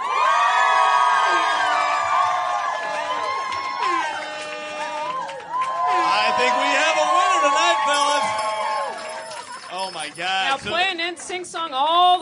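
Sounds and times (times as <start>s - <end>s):
large audience cheering with screams and whoops: 0.0s - 9.5s
clapping: 1.6s - 11.4s.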